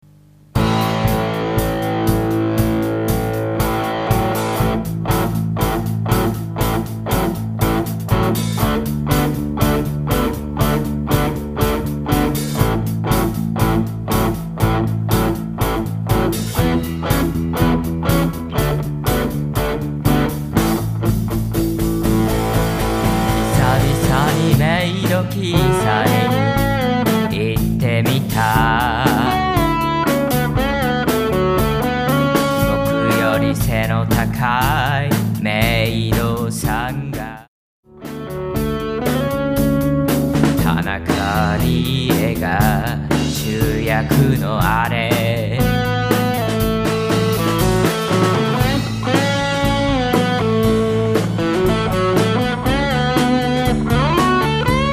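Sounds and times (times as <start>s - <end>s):
blues music: 0.4s - 54.9s.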